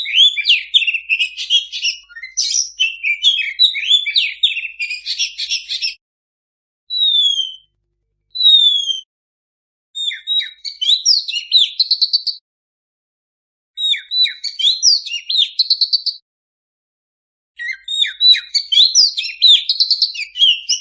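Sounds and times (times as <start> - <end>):
Oriental magpie-robin singing vigorously: 0.0 - 6.0, 6.9 - 7.6, 8.3 - 9.1, 10.0 - 12.4, 13.8 - 16.2, 17.6 - 20.8.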